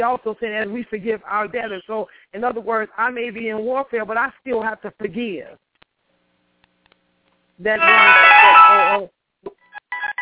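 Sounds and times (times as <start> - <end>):
speech: 0.0 - 5.7, 7.6 - 9.6
mobile phone ringtone electronic melody: 7.8 - 9.0, 9.9 - 10.2.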